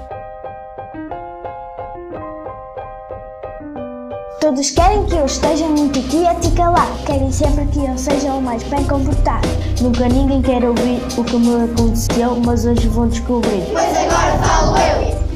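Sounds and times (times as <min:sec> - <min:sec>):
podcast jingle: 0:04.4 - 0:15.3.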